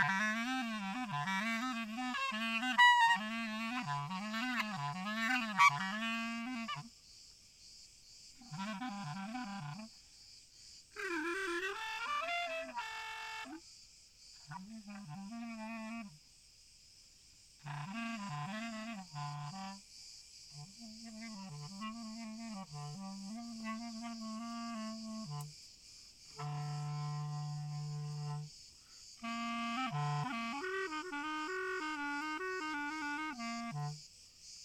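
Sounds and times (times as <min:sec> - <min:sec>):
cicadas buzzing in olive trees in Sarakina Gorge: 0:00.0 - 0:34.6.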